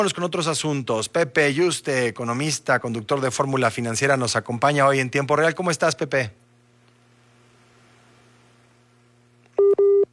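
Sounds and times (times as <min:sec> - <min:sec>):
speech: 0:00.0 - 0:06.4
telephone tones as a call drops: 0:09.6 - 0:10.1.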